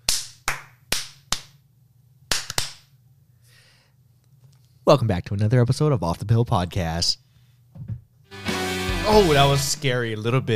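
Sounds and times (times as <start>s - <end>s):
hand clapping: 0.0s - 1.6s, 2.3s - 2.9s
speech: 4.9s - 7.2s, 9.1s - 10.5s.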